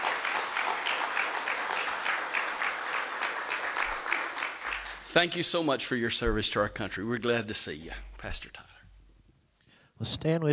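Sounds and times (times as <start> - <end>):
audience applause: 0.0 - 5.7
speech: 5.2 - 8.7, 10.0 - 10.5.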